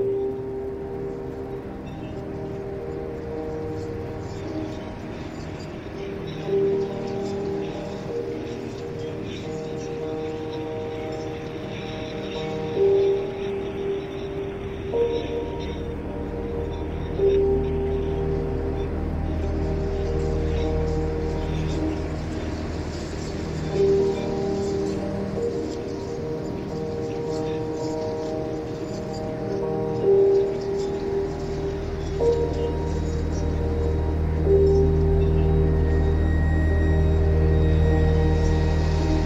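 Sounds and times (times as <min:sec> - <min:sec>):
rain ambience on a grey rainy November day: 0:00.0 - 0:39.2.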